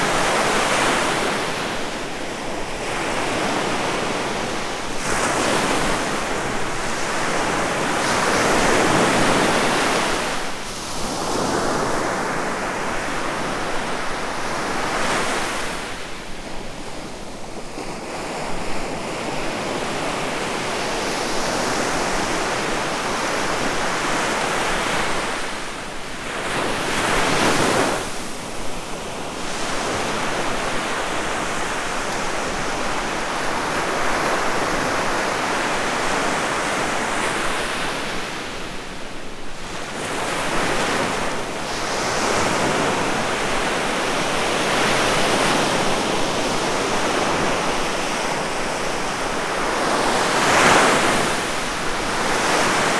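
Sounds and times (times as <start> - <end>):
sea: 0.0 - 52.9.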